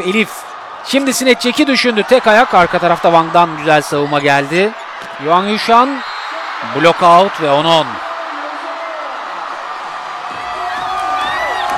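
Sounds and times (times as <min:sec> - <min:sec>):
speech: 0:00.0 - 0:08.1
volleyball crowd cheering after a point: 0:00.0 - 0:11.7
shrill whistles: 0:06.0 - 0:06.5
whoops: 0:10.4 - 0:11.7.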